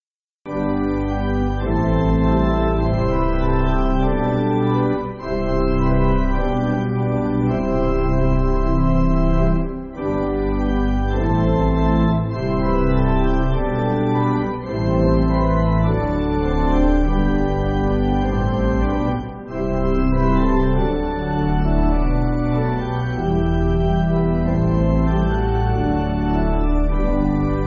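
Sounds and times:
pipe organ backing for churches: 0.5 - 27.6.

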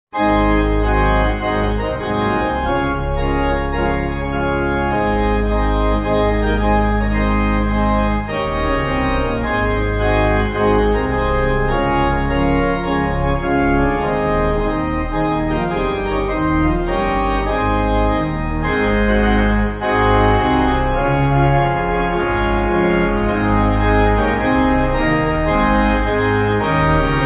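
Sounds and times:
pipe organ: 0.1 - 27.2.

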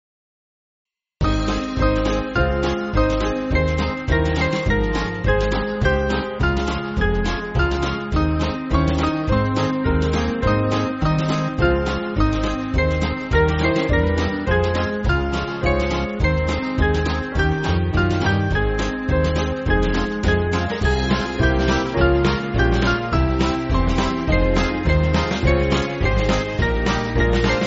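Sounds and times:
band backing track for churches: 1.2 - 27.6.

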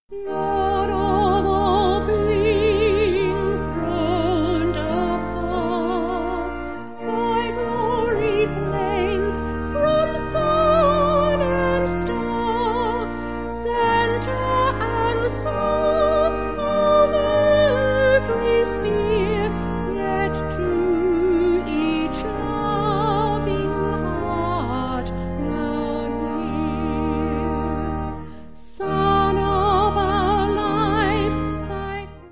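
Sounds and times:
vocal organ: 0.1 - 32.2.

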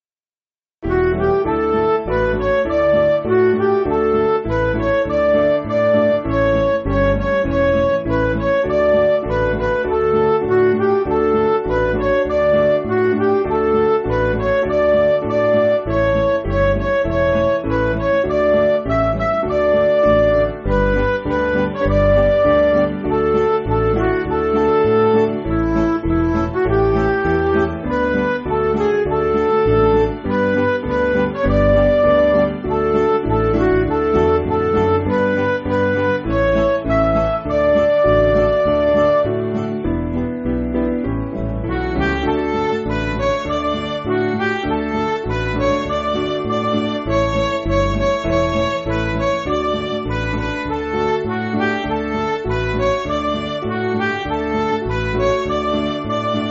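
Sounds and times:
backing music for churches: 0.8 - 56.4.

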